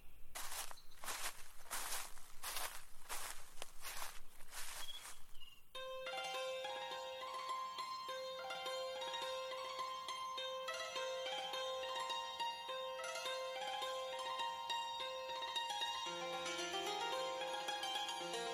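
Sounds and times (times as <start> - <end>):
footsteps crunching on a trail: 0.0 - 5.7
sustained tonal music: 5.8 - 18.5.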